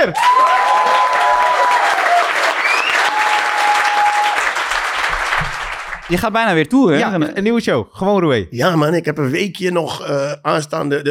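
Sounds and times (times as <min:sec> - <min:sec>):
speech: 0:00.0 - 0:00.6, 0:06.1 - 0:11.0
loud applause from club audience: 0:00.0 - 0:06.2
whistles from club audience: 0:02.6 - 0:04.0.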